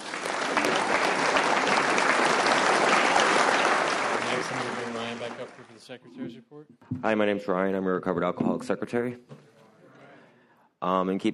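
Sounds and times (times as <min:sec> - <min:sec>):
audience applause: 0:00.0 - 0:05.8
speech: 0:05.9 - 0:09.4, 0:10.8 - 0:11.3.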